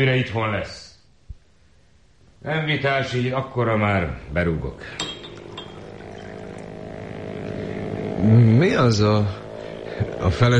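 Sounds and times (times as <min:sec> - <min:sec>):
speech: 0:00.0 - 0:00.8, 0:02.4 - 0:05.2, 0:08.2 - 0:09.4, 0:10.0 - 0:10.5
motorboat engine droning on the lake: 0:05.0 - 0:10.5.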